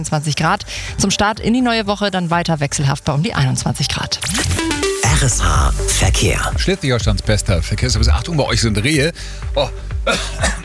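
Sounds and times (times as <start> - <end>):
speech: 0.0 - 10.6
person coughing after choking on something: 10.0 - 10.6.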